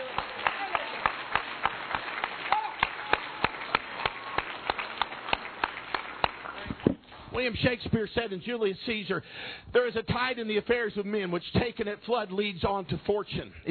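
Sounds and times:
crowd and audience hand clapping: 0.0s - 7.0s
speech: 7.4s - 13.6s.

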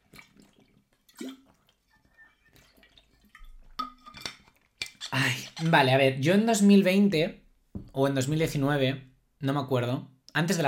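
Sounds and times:
person drinking water: 0.0s - 5.6s
speech: 5.2s - 7.4s, 8.0s - 10.6s.

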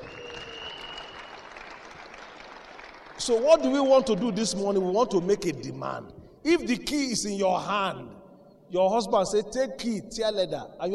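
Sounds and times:
audience applause: 0.0s - 3.2s
speech: 3.2s - 10.9s.

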